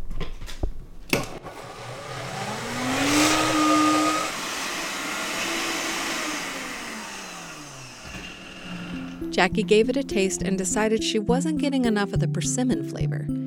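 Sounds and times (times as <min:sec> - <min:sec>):
blender blending a vinaigrette: 0:01.2 - 0:09.3
speech: 0:09.4 - 0:13.4.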